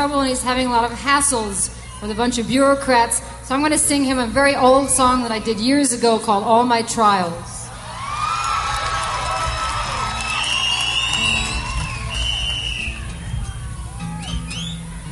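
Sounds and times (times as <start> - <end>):
speech: 0.0 - 7.5
crowd cheering and whooping: 7.7 - 15.1
applause: 8.1 - 12.8
high-pitched whistles: 10.2 - 14.9.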